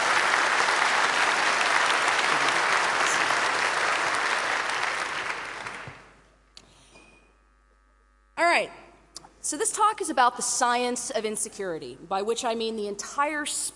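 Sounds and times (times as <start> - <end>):
audience applause: 0.0 - 6.2
speech: 9.5 - 13.7.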